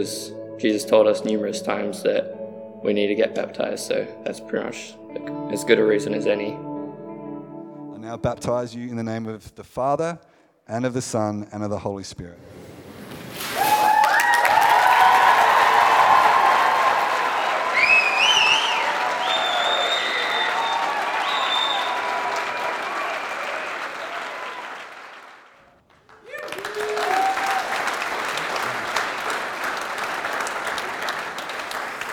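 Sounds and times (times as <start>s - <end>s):
speech: 0.0s - 6.7s, 8.0s - 12.7s
crowd audience applauding: 13.4s - 32.1s.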